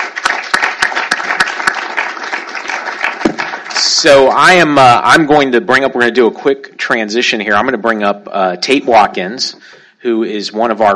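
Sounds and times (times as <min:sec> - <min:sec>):
audience applause: 0:00.0 - 0:04.3
speech: 0:04.0 - 0:10.9.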